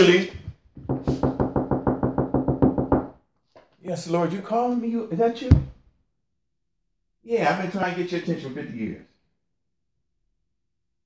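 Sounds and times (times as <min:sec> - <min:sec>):
speech: 0:00.0 - 0:00.4, 0:03.9 - 0:05.8, 0:07.2 - 0:09.1
knocking: 0:00.8 - 0:03.2.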